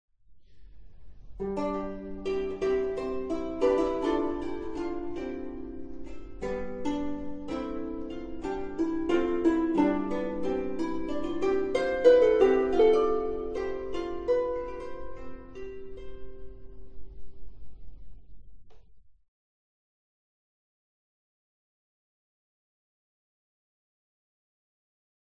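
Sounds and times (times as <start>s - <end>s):
harp: 0.5s - 18.4s.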